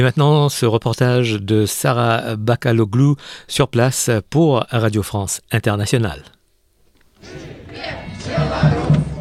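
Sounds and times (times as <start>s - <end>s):
speech: 0.0s - 6.4s, 7.2s - 8.8s
protest crowd shouting and chanting: 7.2s - 9.1s.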